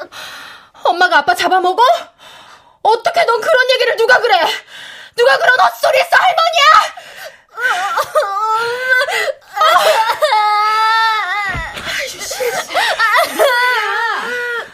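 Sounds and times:
speech: 0:01.0 - 0:11.2
child crying: 0:07.6 - 0:14.7.

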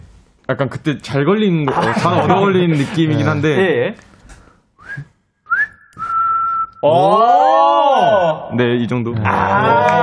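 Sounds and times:
speech: 0:00.5 - 0:04.1, 0:06.8 - 0:10.0
laughter: 0:01.6 - 0:03.8, 0:09.2 - 0:10.0
person whistling a melody live: 0:04.8 - 0:06.8.

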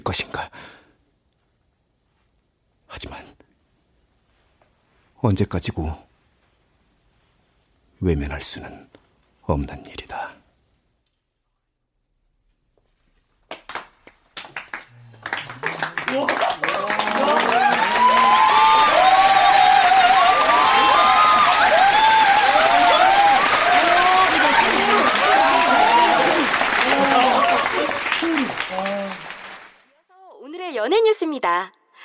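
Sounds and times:
speech: 0:00.0 - 0:00.8, 0:02.9 - 0:03.4, 0:05.2 - 0:06.1, 0:08.0 - 0:10.4, 0:16.1 - 0:16.6, 0:30.8 - 0:31.8
large audience applause after film screening: 0:13.5 - 0:29.9
scattered cheers and overlapping voices: 0:14.4 - 0:29.9.

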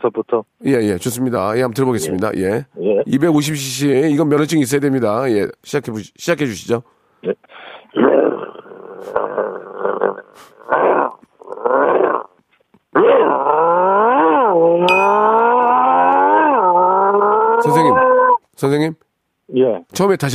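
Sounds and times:
speech: 0:00.0 - 0:10.8, 0:18.6 - 0:20.3
human voice imitating a bulldog's growl: 0:07.9 - 0:12.4, 0:13.0 - 0:18.4.

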